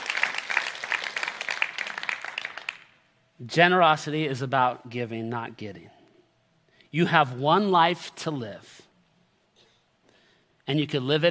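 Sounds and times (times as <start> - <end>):
audience clapping: 0.0 - 3.0
speech: 3.4 - 6.0, 6.9 - 8.8, 10.7 - 11.2.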